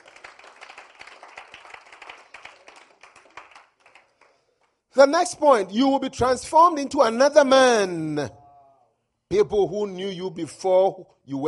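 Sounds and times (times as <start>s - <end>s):
audience clapping: 0.0s - 4.8s
speech: 5.0s - 8.4s, 9.3s - 11.4s.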